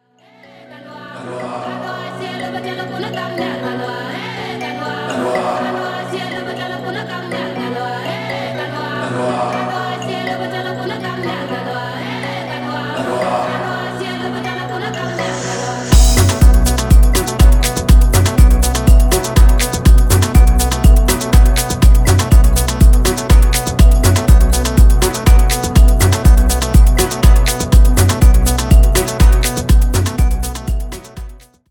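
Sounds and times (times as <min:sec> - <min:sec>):
dub music: 0:13.1 - 0:31.6.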